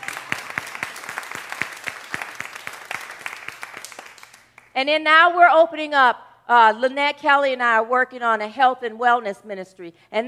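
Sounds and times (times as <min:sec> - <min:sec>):
audience clapping: 0:00.0 - 0:04.7
speech: 0:04.8 - 0:10.2.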